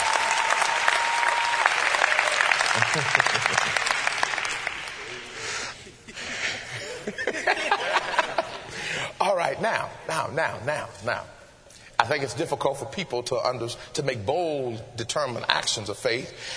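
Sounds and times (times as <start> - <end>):
audience applause: 0.0 - 5.6
people chuckling: 2.8 - 4.0, 5.8 - 8.7
speech: 2.9 - 3.9, 9.6 - 11.4, 12.0 - 16.5.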